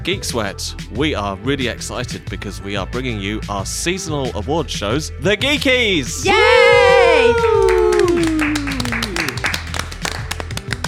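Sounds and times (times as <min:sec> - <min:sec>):
speech: 0:00.0 - 0:07.5
whoop: 0:06.2 - 0:09.4
scattered audience applause: 0:06.5 - 0:10.8.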